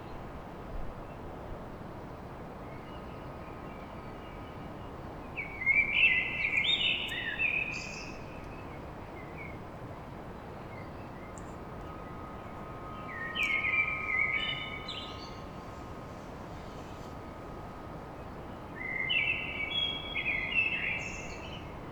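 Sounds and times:
common blackbird song: 5.4 - 8.7, 12.8 - 15.6, 18.8 - 21.7.

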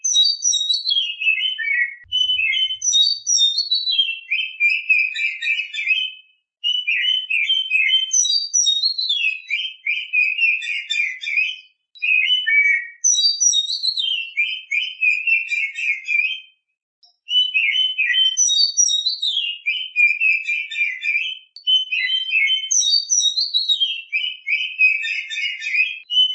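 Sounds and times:
Oriental magpie-robin song: 0.0 - 26.3.

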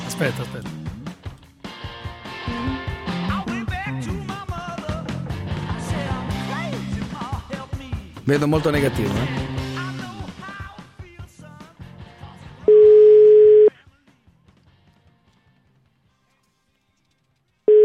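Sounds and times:
speech: 0.2 - 0.9, 8.3 - 9.5
telephone busy tone after hang-up: 12.7 - 13.7, 17.7 - 17.8.

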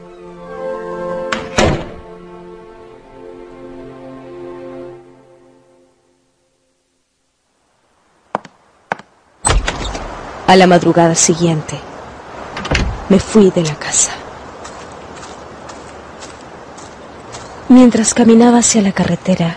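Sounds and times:
door closing shut: 1.3 - 2.0, 9.5 - 10.1, 12.5 - 13.1
speech: 10.5 - 11.9, 13.1 - 14.2, 17.7 - 19.5.

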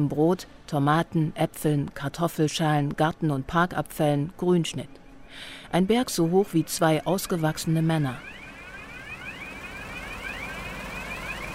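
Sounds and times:
speech: 0.0 - 8.4
garbage truck reversing alarm at a biogas plant in Saxony-Anhalt: 6.3 - 11.5.

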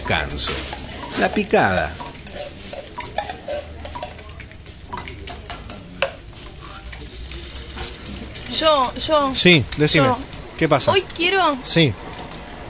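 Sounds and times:
clinks of dishes, pots and cutlery: 0.0 - 8.9
stirring: 0.0 - 11.2
sizzling in a busy café kitchen: 0.0 - 12.6
speech: 0.1 - 2.0, 8.6 - 12.0.

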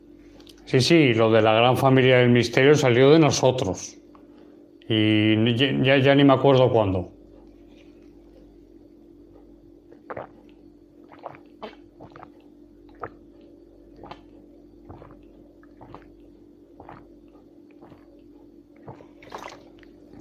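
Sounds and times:
speech: 0.7 - 4.0, 4.9 - 7.2
person gulping water from a baby bottle: 9.9 - 20.1.

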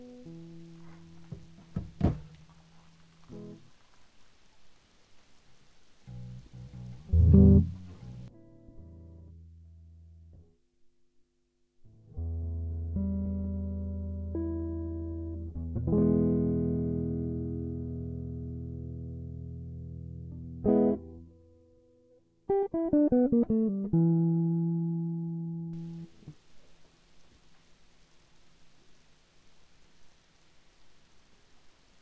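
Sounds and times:
electric guitar played through effects unit: 6.1 - 10.3, 12.1 - 26.3.

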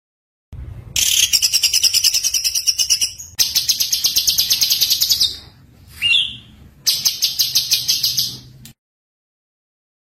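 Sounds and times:
white-eye twittering: 1.0 - 8.5.

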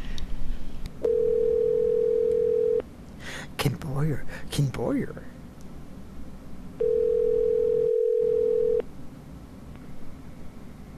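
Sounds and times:
telephone dial tone while calling back: 1.0 - 2.8, 6.8 - 8.8
speech: 3.6 - 5.4.

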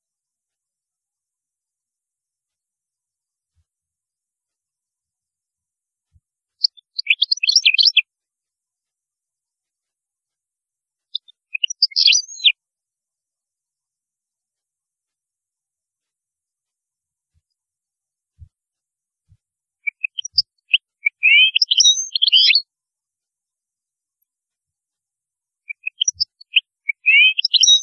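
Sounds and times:
European goldfinch singing: 6.6 - 8.0, 11.1 - 12.6, 19.8 - 22.6, 25.7 - 27.8.

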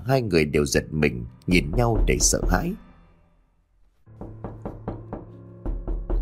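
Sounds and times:
speech: 0.0 - 2.8
solid knocks on a door from outside: 1.5 - 2.8, 4.1 - 6.2.

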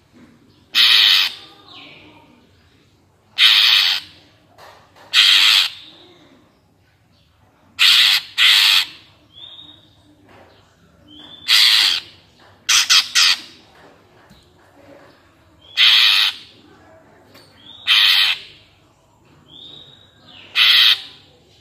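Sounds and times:
greater green leafbird rasping calls: 0.7 - 1.8, 3.4 - 4.2, 5.1 - 6.0, 7.8 - 9.6, 11.3 - 13.6, 15.6 - 16.5, 17.6 - 18.6, 19.6 - 21.3.

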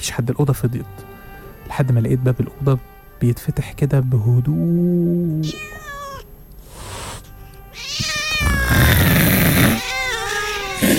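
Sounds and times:
speech: 0.0 - 1.1, 1.7 - 5.9
cat meowing: 4.5 - 6.3, 7.7 - 10.9.

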